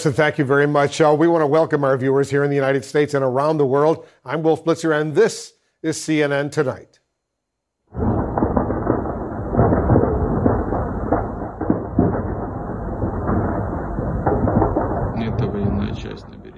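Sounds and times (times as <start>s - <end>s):
speech: 0.0s - 7.0s
loud explosions: 7.9s - 16.5s.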